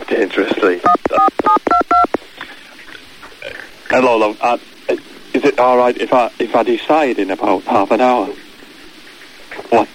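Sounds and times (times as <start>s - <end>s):
speech: 0.2s - 1.1s, 4.4s - 4.7s, 5.5s - 8.4s
telephone keypad dialing tones: 0.9s - 2.2s.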